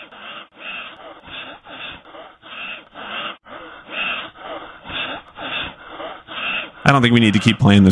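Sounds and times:
heavy breathing: 0.0s - 7.6s
speech: 6.9s - 7.9s.

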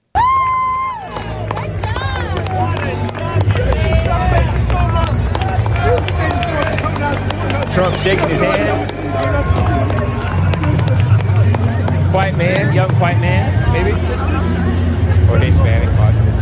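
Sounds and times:
crowd giving a standing ovation: 0.0s - 14.5s
whistles: 4.7s - 6.8s
brief opening tone: 5.7s - 11.2s
speech: 7.8s - 9.0s, 12.2s - 14.6s, 15.3s - 16.2s.

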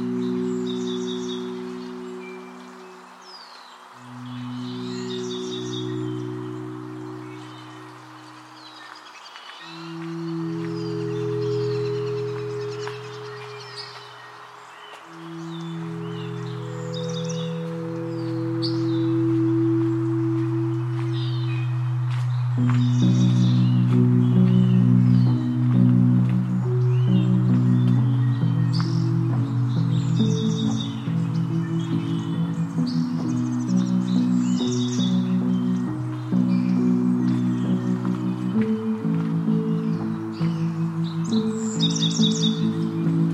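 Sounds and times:
birds chirping at Oaks Bottom along the Willamette River: 0.0s - 43.3s
long low humming tones: 4.0s - 8.8s, 9.6s - 43.3s.

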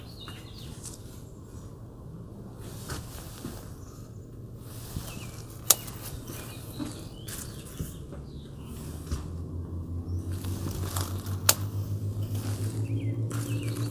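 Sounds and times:
grape leaves rustling as they are picked in a patio garden: 0.0s - 13.9s
low hum: 0.0s - 13.9s
sharp snaps: 5.6s - 6.2s, 10.3s - 13.9s.

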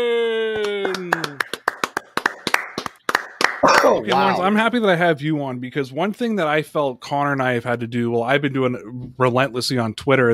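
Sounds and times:
hand claps: 0.5s - 4.2s
speech: 3.9s - 10.3s.

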